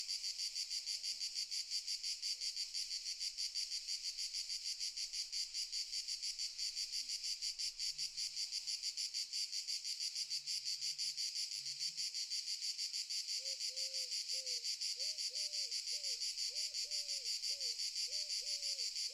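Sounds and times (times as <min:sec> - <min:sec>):
cicadas stridulating very loudly in summer fields in the morning: 0:00.0 - 0:19.1.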